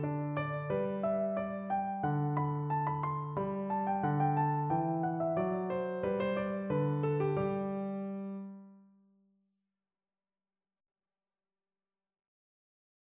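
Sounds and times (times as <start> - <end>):
bourree piano piece: 0.0 - 8.9.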